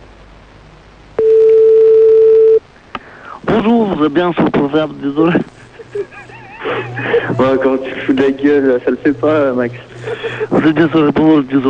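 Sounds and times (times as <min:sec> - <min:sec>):
telephone tone: 0:01.2 - 0:02.6
speech: 0:03.6 - 0:06.2, 0:06.9 - 0:11.6
laughter: 0:05.1 - 0:11.4.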